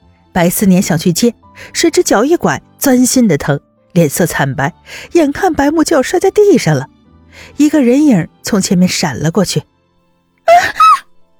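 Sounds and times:
speech: 0:00.4 - 0:09.7
two people screaming: 0:10.5 - 0:11.1.

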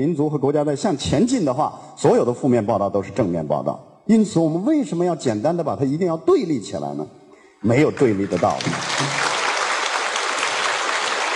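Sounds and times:
speech: 0:00.0 - 0:09.2
audience applause: 0:08.0 - 0:11.3.

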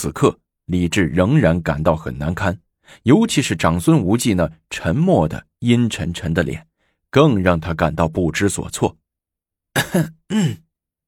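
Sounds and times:
speech: 0:00.0 - 0:09.0, 0:09.8 - 0:10.6
person coughing behind a curtain: 0:09.8 - 0:10.7.

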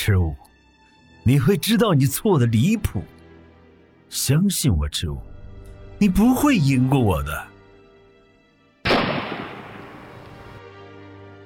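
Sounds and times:
speech: 0:00.0 - 0:00.5, 0:01.2 - 0:03.2, 0:04.1 - 0:05.3, 0:06.0 - 0:07.5
gunshot: 0:08.9 - 0:10.6.

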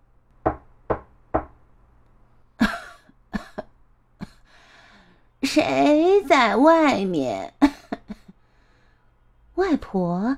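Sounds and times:
gentle knocking on a cottage door: 0:00.4 - 0:01.6
speech: 0:05.5 - 0:07.6, 0:09.6 - 0:10.3.

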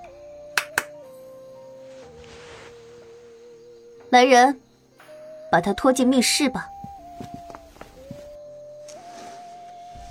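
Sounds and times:
hand clap: 0:00.6 - 0:01.0
speech: 0:04.1 - 0:04.6, 0:05.5 - 0:06.7.

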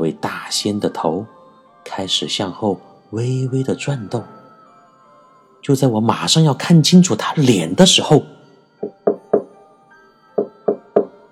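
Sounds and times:
speech: 0:00.0 - 0:04.4, 0:05.6 - 0:09.0
knocks on a wooden floor: 0:08.8 - 0:09.6, 0:10.4 - 0:11.2.

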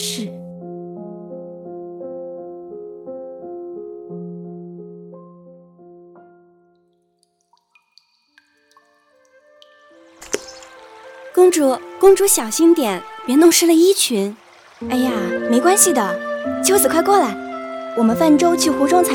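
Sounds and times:
soft melodic music: 0:00.0 - 0:07.5, 0:08.4 - 0:19.1
water dripping onto a windowsill: 0:06.7 - 0:17.7
speech: 0:11.5 - 0:17.4, 0:18.0 - 0:19.1.

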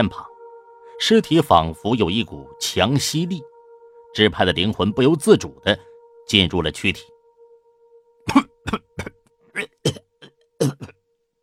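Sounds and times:
speech: 0:00.0 - 0:00.3, 0:01.0 - 0:03.5, 0:04.1 - 0:07.1
faint steady hum: 0:00.0 - 0:09.6
violent coughing: 0:08.3 - 0:11.0.

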